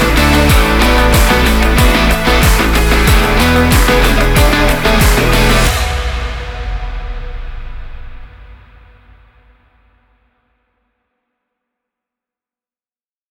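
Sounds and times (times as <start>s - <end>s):
energetic action rock music: 0.0s - 6.4s.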